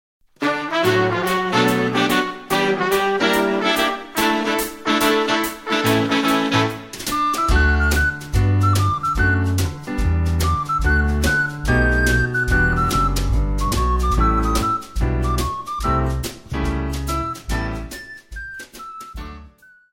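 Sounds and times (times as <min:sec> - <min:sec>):
instrumental music: 0:00.3 - 0:19.9.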